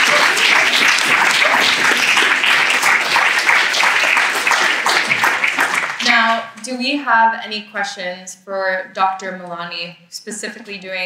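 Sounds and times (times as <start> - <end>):
crowd applauding: 0.0 - 6.4
speech: 6.7 - 11.0.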